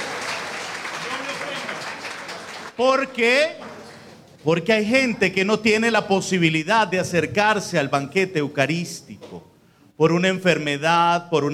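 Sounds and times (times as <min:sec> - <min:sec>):
applause at a Catholic religious gathering: 0:00.0 - 0:04.2
speech: 0:02.8 - 0:03.7, 0:04.4 - 0:11.5.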